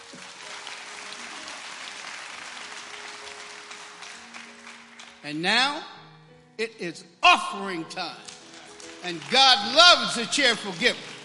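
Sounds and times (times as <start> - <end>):
applause from a large group: 0.0 - 5.2, 8.1 - 11.2
speech: 5.2 - 6.0, 6.6 - 8.4, 9.0 - 11.1.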